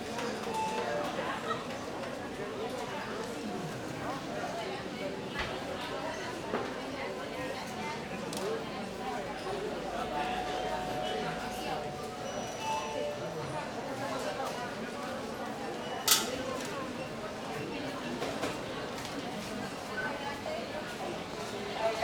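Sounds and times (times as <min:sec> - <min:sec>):
murmur of people in a sanatorium entrance hall: 0:00.0 - 0:22.0
call bells ringing in a sanatorium entrance hall: 0:10.0 - 0:14.1.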